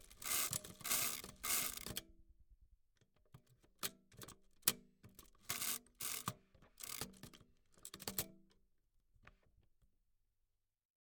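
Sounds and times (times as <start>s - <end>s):
mechanical calculator: 0.0s - 2.0s, 5.4s - 7.2s.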